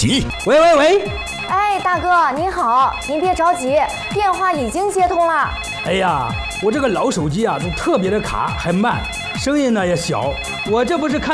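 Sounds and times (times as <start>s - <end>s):
bright electronic telephone ringtone: 0.1s - 11.3s.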